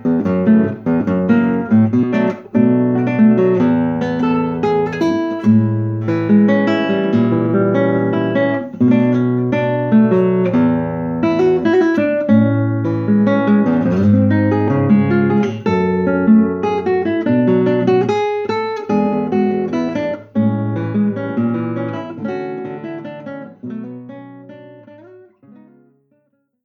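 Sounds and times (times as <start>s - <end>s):
guitar playing: 0.0s - 26.4s.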